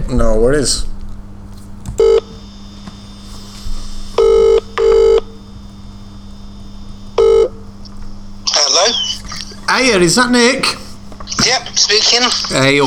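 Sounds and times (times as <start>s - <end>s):
faint constant hum: 0.0s - 12.8s
speech: 0.1s - 0.9s, 9.7s - 10.8s, 11.4s - 12.8s
telephone ringing tone through the line: 2.0s - 2.8s, 4.2s - 5.4s, 7.1s - 7.6s.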